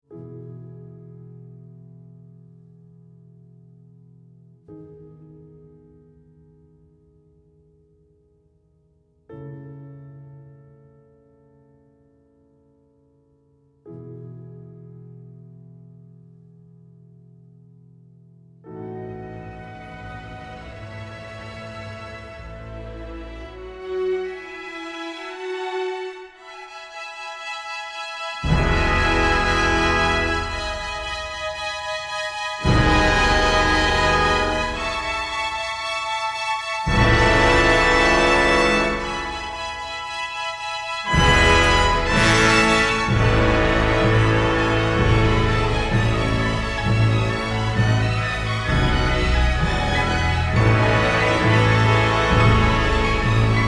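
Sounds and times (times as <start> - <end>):
epic movie trailer music: 28.4 - 53.6.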